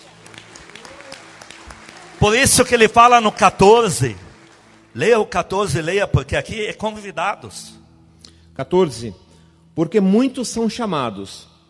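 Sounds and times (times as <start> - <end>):
audience applause: 0.0 - 5.5
speech: 2.2 - 4.2, 5.0 - 7.8, 8.6 - 9.2, 9.8 - 11.6.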